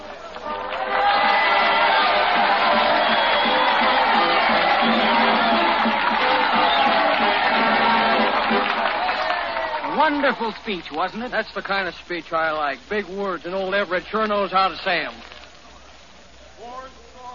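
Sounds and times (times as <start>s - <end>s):
large crowd cheering and applauding: 0.0s - 11.0s
whoops: 0.8s - 9.9s
speech: 10.1s - 15.3s.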